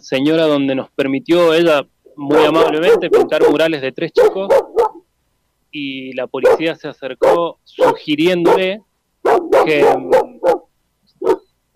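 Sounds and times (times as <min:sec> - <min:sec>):
speech: 0:00.0 - 0:04.6, 0:05.7 - 0:10.6
dog barks: 0:02.3 - 0:05.1, 0:06.4 - 0:11.7.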